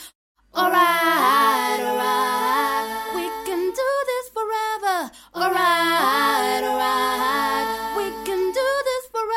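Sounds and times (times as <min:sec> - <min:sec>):
pop music in E minor: 0:00.6 - 0:04.1, 0:05.4 - 0:09.3.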